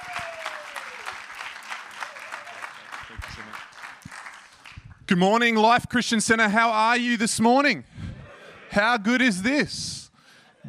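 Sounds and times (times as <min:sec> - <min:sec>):
church congregation at Life Christian Center clapping to welcome a preacher: 0:00.0 - 0:05.1
speech: 0:05.1 - 0:07.9, 0:08.7 - 0:10.0.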